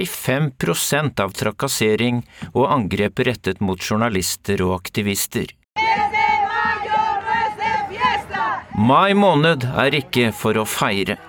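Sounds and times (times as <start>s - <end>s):
speech: 0.0s - 6.0s, 8.8s - 11.2s
crowd of protesting mothers chanting and shouting: 5.8s - 10.4s.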